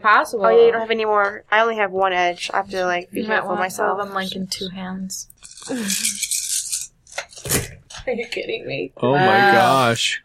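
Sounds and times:
speech: 0.0s - 6.3s, 7.4s - 10.2s
handful of dice rolling: 5.4s - 6.9s.

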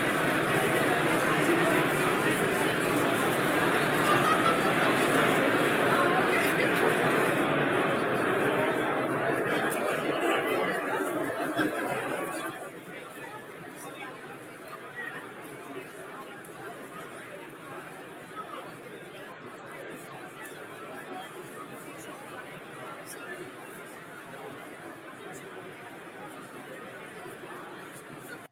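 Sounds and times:
people laughing: 0.0s - 12.8s
crowd chatter in a trading card Trade Night room: 0.0s - 28.5s.

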